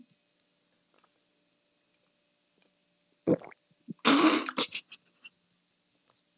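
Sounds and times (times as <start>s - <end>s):
person chugging a bottle of Coca-Cola: 3.3s - 4.7s.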